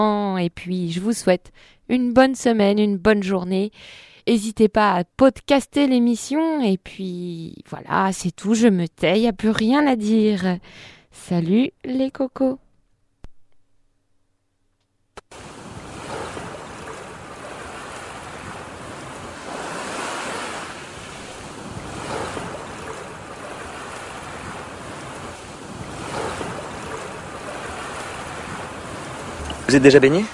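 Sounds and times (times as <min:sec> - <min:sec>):
speech: 0:00.0 - 0:12.6, 0:29.7 - 0:30.3
sea waves on a beach with strong currents: 0:15.3 - 0:30.3
wind noise: 0:15.4 - 0:30.3.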